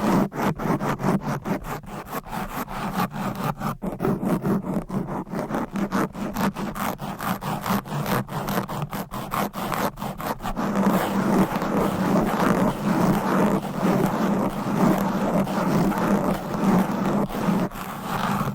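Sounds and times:
long nails scratching across a microphone: 0.0s - 18.5s.

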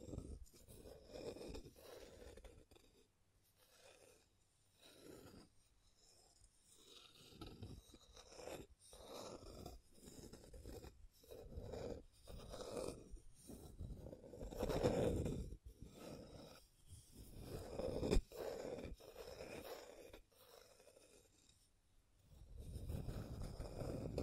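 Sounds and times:
scratching and tracing strokes: 0.0s - 21.7s, 22.3s - 24.2s.

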